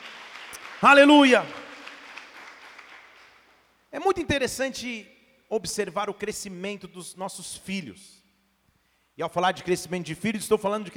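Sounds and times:
audience applause: 0.0s - 3.5s
speech: 0.8s - 1.6s, 4.0s - 8.2s, 9.2s - 10.9s.

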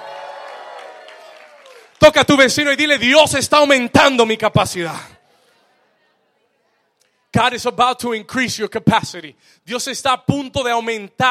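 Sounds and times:
audience applauding and cheering: 0.0s - 2.1s
speech: 2.1s - 5.2s, 7.3s - 11.2s.

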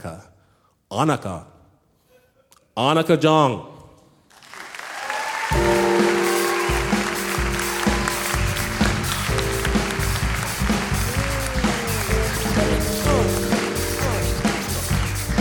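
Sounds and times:
speech: 0.9s - 1.5s, 2.8s - 3.7s
audience applause at a live storytelling show: 4.3s - 15.3s.

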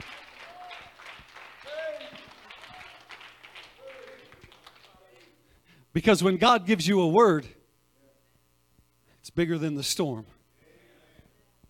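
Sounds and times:
audience clapping: 0.0s - 5.4s
speech: 6.0s - 7.6s, 9.4s - 10.4s.

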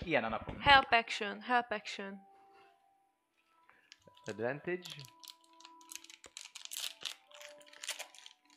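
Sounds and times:
speech: 0.1s - 2.3s, 4.2s - 5.2s
plastic chocolate bag crinkling as someone struggles to open it: 3.8s - 8.5s.

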